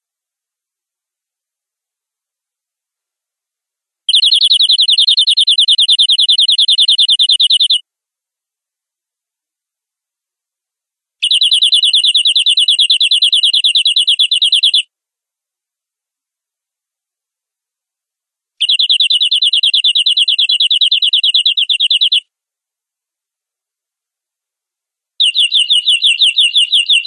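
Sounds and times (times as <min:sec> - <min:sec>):
domestic canary giving long rolling song: 0:04.1 - 0:07.8, 0:11.2 - 0:14.9, 0:18.6 - 0:22.3, 0:25.2 - 0:27.0.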